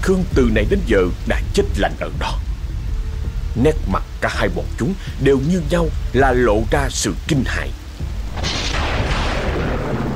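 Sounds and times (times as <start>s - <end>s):
speech: 0.0s - 2.4s, 3.6s - 8.1s
deafening thunderclap: 8.0s - 10.1s.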